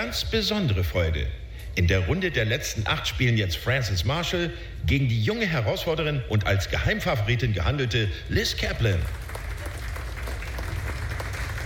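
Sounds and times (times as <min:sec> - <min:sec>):
speech: 0:00.1 - 0:09.2
audience applause: 0:09.0 - 0:11.6.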